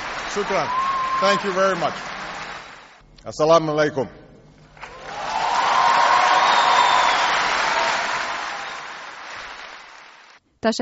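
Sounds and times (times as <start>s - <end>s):
audience of about 3,000 applauding Barack Obama's speech in Cairo: 0.0s - 3.0s, 4.8s - 10.4s
speech: 0.4s - 2.1s, 3.2s - 4.2s.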